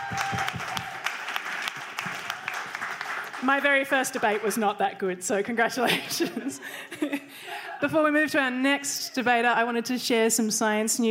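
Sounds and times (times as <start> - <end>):
audience applause: 0.0 - 4.8
speech: 3.4 - 11.0
laughter: 5.8 - 8.0.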